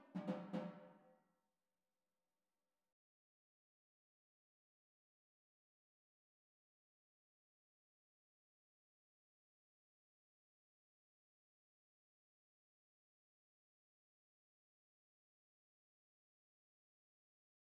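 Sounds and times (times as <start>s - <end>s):
drumline tenor drums playing a cadence: 0.0s - 0.9s.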